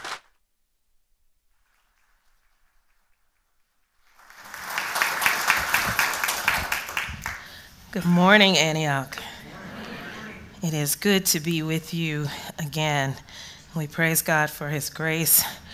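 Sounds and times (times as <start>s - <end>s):
church congregation applause welcoming a guest speaker: 4.0s - 7.6s
speech: 7.9s - 9.3s, 10.6s - 15.7s.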